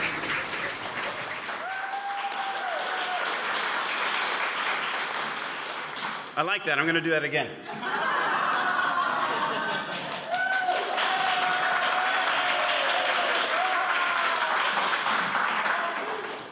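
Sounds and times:
audience applause: 0:00.0 - 0:06.4, 0:08.5 - 0:16.4
whoops: 0:01.6 - 0:03.4, 0:10.3 - 0:14.8
speech: 0:06.4 - 0:08.0
laughter: 0:07.6 - 0:10.3.

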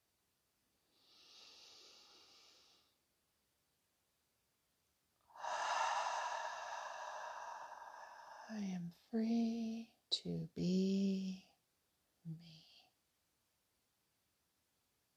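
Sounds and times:
slow breathing during a guided meditation: 0:00.9 - 0:03.0, 0:05.3 - 0:08.9
speech: 0:08.5 - 0:11.4.

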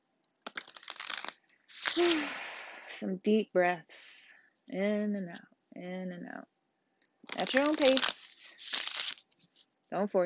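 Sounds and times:
tarot cards being shuffled: 0:00.5 - 0:02.3, 0:07.3 - 0:09.6
speech: 0:02.0 - 0:02.4, 0:03.0 - 0:04.1, 0:04.7 - 0:06.6, 0:07.3 - 0:08.2, 0:09.9 - 0:10.2.

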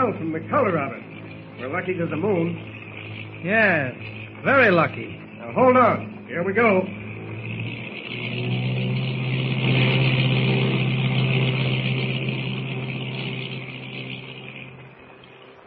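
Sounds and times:
speech: 0:00.0 - 0:07.0
seaplane engine droning while landing and taxiing to shore: 0:00.0 - 0:15.6.

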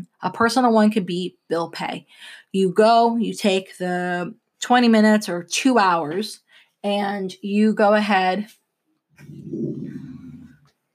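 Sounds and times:
speech: 0:00.2 - 0:08.6
startled puppy growling: 0:09.2 - 0:10.6.

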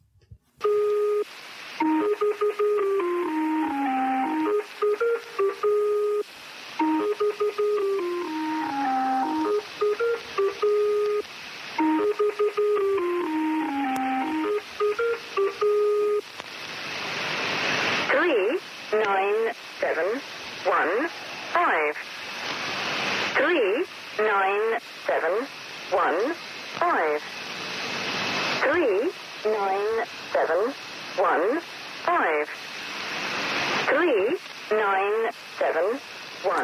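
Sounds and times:
harsh bursts of noise and static: 0:00.6 - 0:36.6
steady shortwave hiss: 0:00.6 - 0:36.6
shortwave number station repeating tonal melody: 0:01.8 - 0:06.2, 0:06.8 - 0:11.1, 0:11.8 - 0:16.0.

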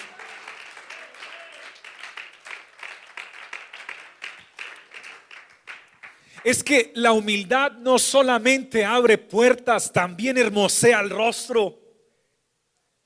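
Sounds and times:
audience applause: 0:00.0 - 0:06.5
speech: 0:06.4 - 0:11.8.

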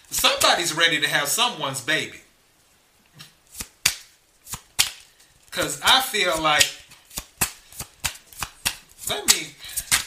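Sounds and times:
speech: 0:00.5 - 0:02.2, 0:05.6 - 0:06.8, 0:09.1 - 0:09.6
tarot cards being shuffled: 0:03.5 - 0:10.0.

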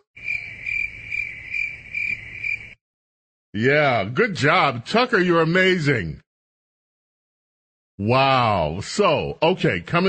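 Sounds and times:
crickets chirping: 0:00.2 - 0:02.8
speech: 0:03.6 - 0:06.2, 0:08.0 - 0:10.0.

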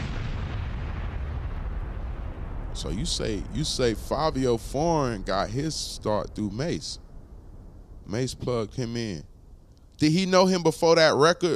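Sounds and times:
bomb explosion sound effect: 0:00.0 - 0:10.6
speech: 0:02.8 - 0:07.0, 0:08.1 - 0:09.3, 0:10.0 - 0:11.5.

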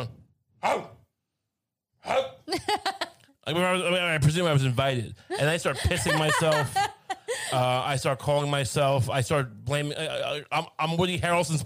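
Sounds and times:
speech: 0:00.0 - 0:01.0, 0:02.0 - 0:11.6
person imitating a dog barking: 0:00.6 - 0:01.0, 0:02.0 - 0:02.5
laughter: 0:02.5 - 0:03.3, 0:05.3 - 0:07.8.

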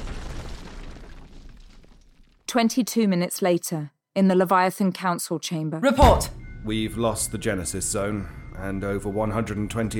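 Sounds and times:
explosion blast: 0:00.0 - 0:02.3
crackling debris: 0:00.0 - 0:02.5
speech: 0:02.5 - 0:09.9.

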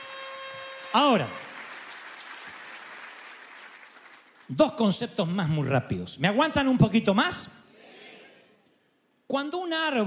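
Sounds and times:
crowd applauding: 0:00.0 - 0:04.6
speech: 0:00.9 - 0:01.4, 0:04.5 - 0:07.6, 0:09.3 - 0:10.0.

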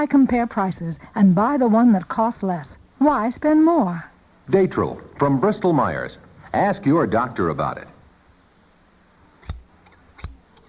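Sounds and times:
speech: 0:00.0 - 0:07.9
scissors snipping while trimming a little girl's hair: 0:09.4 - 0:10.6.

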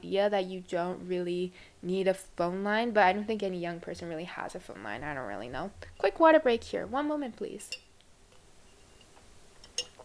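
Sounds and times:
speech: 0:00.1 - 0:07.8
Google sponsored straw clinking in glass spaghetti jar: 0:08.9 - 0:10.0.

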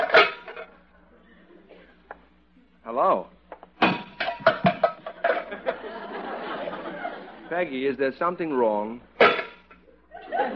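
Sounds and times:
pots and pans clattering while dinner is cooked: 0:00.0 - 0:00.7, 0:03.8 - 0:05.8, 0:09.2 - 0:09.8
speech: 0:02.9 - 0:03.4, 0:07.5 - 0:09.1
laughter: 0:05.2 - 0:07.7, 0:10.0 - 0:10.5.

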